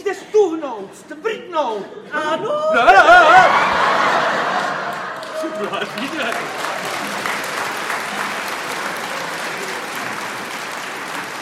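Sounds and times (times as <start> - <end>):
murmur of voices: 0.0 - 11.4
speech: 0.1 - 3.8, 5.4 - 6.8
crowd laughing: 2.2 - 11.4
crowd applause: 3.2 - 11.4.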